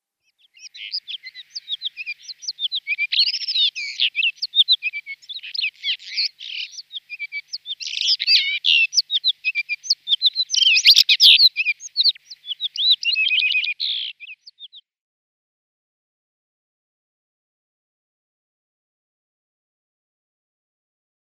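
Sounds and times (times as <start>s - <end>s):
Blue Rock-Thrush song: 0.4s - 14.6s.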